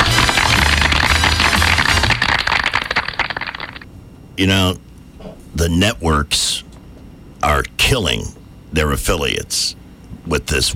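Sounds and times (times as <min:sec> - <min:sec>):
people clapping: 0:00.0 - 0:03.8
speech: 0:04.4 - 0:04.9, 0:05.5 - 0:06.5, 0:07.4 - 0:10.7.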